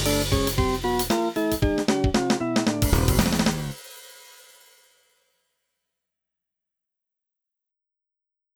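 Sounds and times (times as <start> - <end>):
funk music: 0.0 - 4.7.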